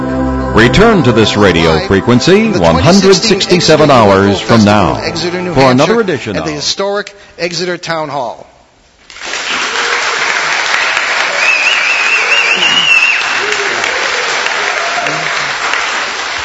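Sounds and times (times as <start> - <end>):
speech: 0.6 - 8.5
live studio audience at a paranormal radio show in Exeter Town Hall applauding and cheering: 9.1 - 16.4
shrill wavering whistle: 11.3 - 13.7.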